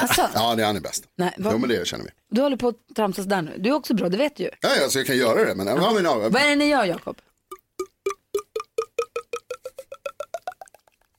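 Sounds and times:
speech: 0:00.0 - 0:07.3
voice imitating wine glugging out of a bottle: 0:07.4 - 0:11.1.

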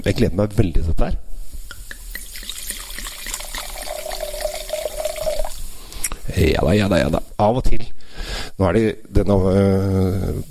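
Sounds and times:
speech: 0:00.0 - 0:01.2, 0:06.3 - 0:10.4
white wine poured into a glass: 0:01.8 - 0:05.8.

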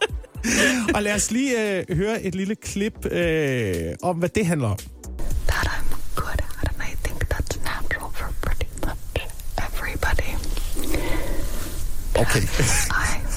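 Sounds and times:
speech: 0:00.4 - 0:04.9, 0:12.2 - 0:13.0
soft ASMR whispering: 0:05.4 - 0:13.3.

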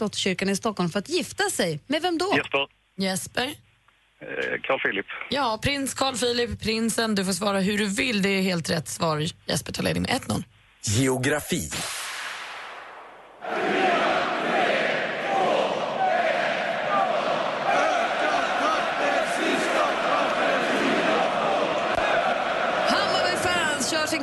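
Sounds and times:
speech: 0:00.0 - 0:12.0
football crowd singing a traditional chant: 0:13.4 - 0:24.2.

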